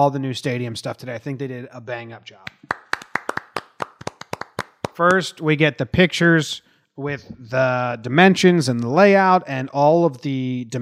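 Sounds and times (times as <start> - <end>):
speech: 0.0 - 2.7, 5.0 - 10.8
applause, hands clapping: 2.4 - 5.4.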